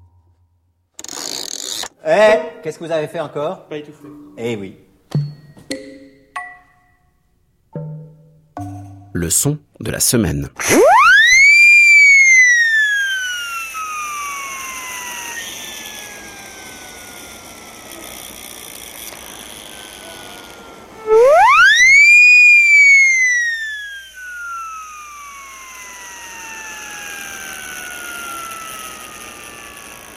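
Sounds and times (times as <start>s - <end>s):
speech: 2.0s - 4.9s, 9.2s - 11.0s
Acme mouth siren wailing: 10.6s - 30.1s.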